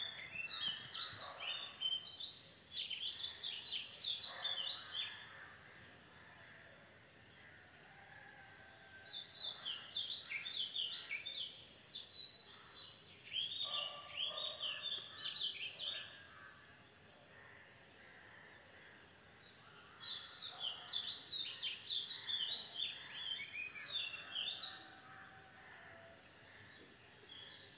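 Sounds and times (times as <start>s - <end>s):
birds singing in a busy morning chorus: 0.0s - 5.3s, 9.1s - 16.4s, 18.9s - 27.7s.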